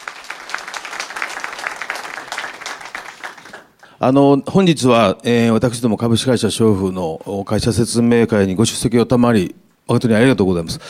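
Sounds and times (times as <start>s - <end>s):
audience applause: 0.0s - 3.9s
speech: 4.0s - 10.8s.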